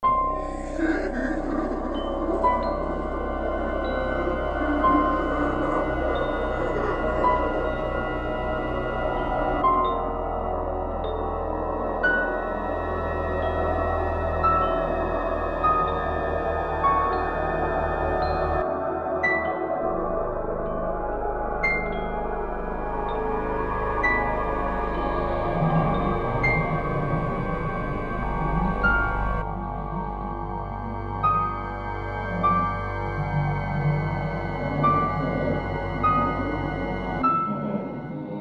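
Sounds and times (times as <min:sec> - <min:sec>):
horror music: 0:00.0 - 0:38.3.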